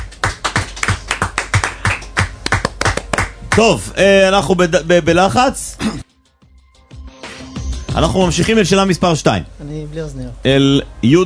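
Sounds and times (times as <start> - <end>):
rhythmic clapping: 0.0 - 3.9
speech: 3.6 - 6.0, 8.0 - 11.2.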